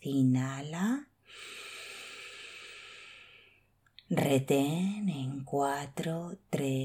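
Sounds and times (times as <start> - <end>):
speech: 0.0 - 1.1, 4.1 - 6.8
long exhale through the mouth during a guided breathing exercise: 1.3 - 3.7.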